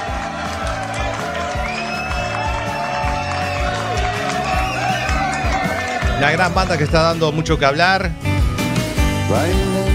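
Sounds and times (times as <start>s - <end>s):
audience applause: 0.0s - 7.4s
speech: 6.2s - 8.3s, 9.3s - 9.8s.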